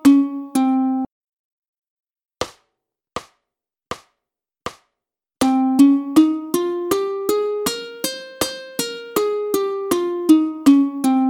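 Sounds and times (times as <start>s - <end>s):
ukulele playing a Phrygian scale: 0.0s - 1.1s, 5.4s - 11.2s.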